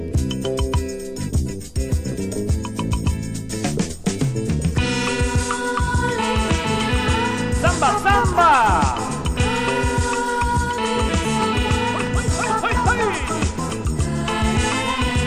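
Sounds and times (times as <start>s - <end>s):
samba music: 0.1s - 15.2s.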